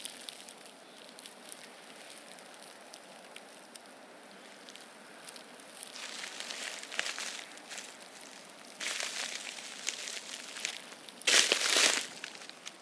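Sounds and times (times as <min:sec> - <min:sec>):
winter woodland ambience: 0:04.0 - 0:12.8.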